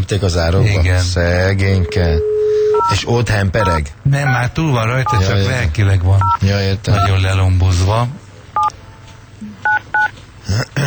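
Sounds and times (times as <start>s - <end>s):
speech: 0.1s - 8.2s
touch-tone beeps of a telephone number being dialed: 1.8s - 3.0s, 3.6s - 4.4s, 5.1s - 5.3s, 9.7s - 10.1s.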